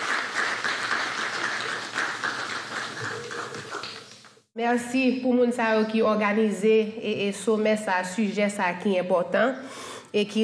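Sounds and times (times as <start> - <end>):
audience applause: 0.0 - 4.4
speech: 4.6 - 10.4.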